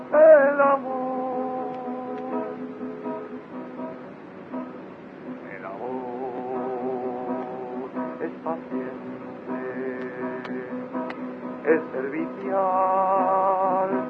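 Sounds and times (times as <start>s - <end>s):
Neocatechumenal Way hymn: 0.0s - 2.8s, 5.4s - 11.0s, 11.6s - 14.0s.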